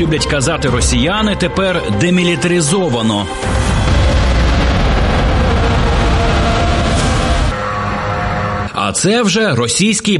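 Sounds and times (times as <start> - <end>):
speech: 0.0 - 4.2, 8.8 - 10.1
explosions after drone attack: 3.3 - 7.9.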